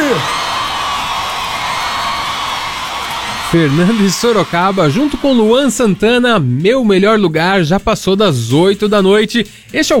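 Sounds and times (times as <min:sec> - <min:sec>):
crowd applause: 0:00.0 - 0:06.3
speech: 0:00.1 - 0:00.4, 0:03.5 - 0:09.9.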